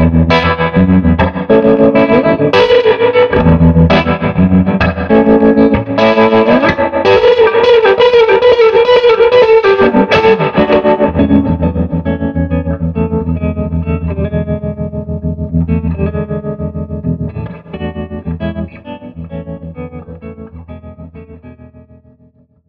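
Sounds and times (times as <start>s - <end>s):
SG electric guitar with tremolo, dirty and clean, through Swart AST Pro amp: 0.0s - 22.6s.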